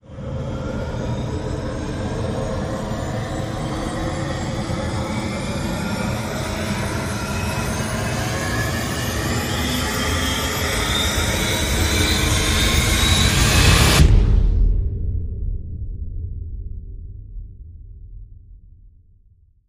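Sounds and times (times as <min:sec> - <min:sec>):
long rising sound effect: 0:00.2 - 0:14.7.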